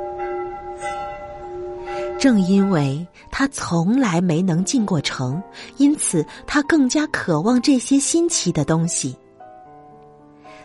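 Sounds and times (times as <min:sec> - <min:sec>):
church bell ringing: 0:00.0 - 0:05.3
speech: 0:02.2 - 0:09.2.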